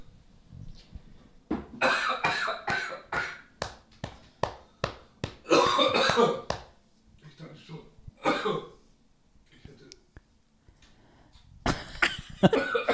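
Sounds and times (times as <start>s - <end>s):
person coughing after choking on a drink: 1.8s - 3.4s, 5.5s - 6.5s, 8.2s - 8.8s, 12.5s - 12.9s.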